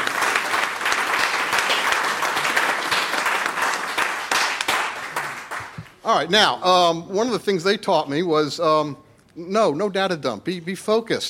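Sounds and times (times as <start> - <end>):
crowd applause: 0.0 - 6.0
speech: 6.1 - 11.2.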